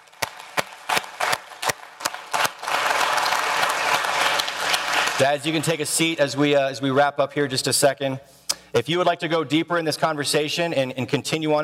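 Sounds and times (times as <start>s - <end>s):
audience applause: 0.0s - 5.8s
speech: 5.2s - 11.6s.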